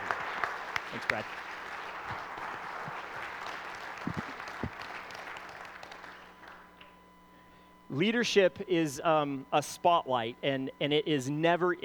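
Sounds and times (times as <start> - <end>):
room full of people applauding: 0.0 - 6.8
speech: 0.9 - 1.5, 7.9 - 11.8.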